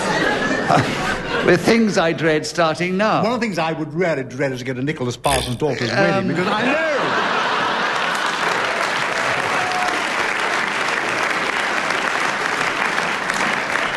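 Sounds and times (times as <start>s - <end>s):
laughter: 0.0s - 2.0s, 5.7s - 8.6s
speech: 0.7s - 7.3s
studio audience clapping: 7.6s - 13.9s.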